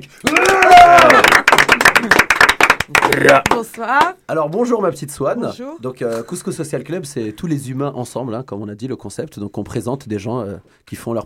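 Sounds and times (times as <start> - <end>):
speech: 0.0 - 1.2, 3.1 - 11.2
audience applause: 0.2 - 3.6.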